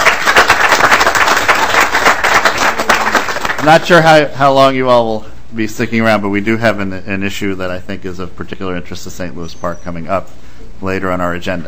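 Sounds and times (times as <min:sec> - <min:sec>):
audience applause: 0:00.0 - 0:03.9
speech: 0:03.6 - 0:11.6.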